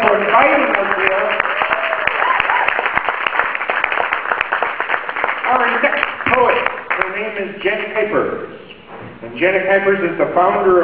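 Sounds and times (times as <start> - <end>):
audience applause: 0.0 - 7.3
speech: 7.6 - 8.6, 9.2 - 10.8.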